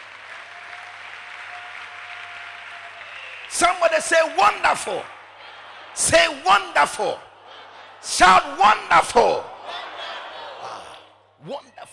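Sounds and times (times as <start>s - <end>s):
hand clapping: 0.0s - 3.6s
speech: 3.5s - 5.1s, 6.0s - 7.2s, 8.0s - 9.5s
laughter: 4.4s - 11.1s.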